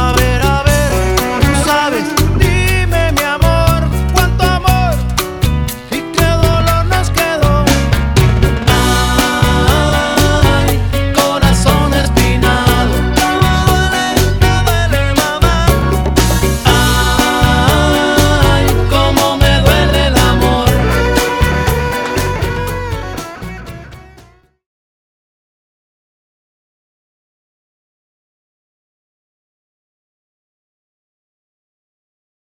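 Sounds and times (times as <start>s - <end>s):
drum beat: 0.0s - 24.2s.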